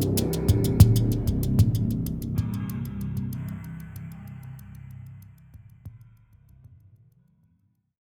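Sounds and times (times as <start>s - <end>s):
dark industrial music: 0.0s - 5.5s.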